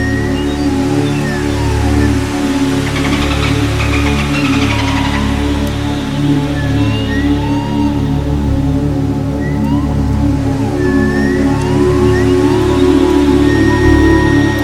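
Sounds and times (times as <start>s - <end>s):
sleeping dolphins: 0.0s - 14.6s.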